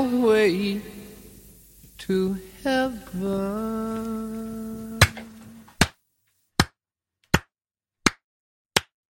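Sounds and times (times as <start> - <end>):
speech: 0.0 - 1.0, 2.0 - 4.9
slow hand clapping: 5.0 - 6.0, 6.6 - 8.2, 8.8 - 9.0.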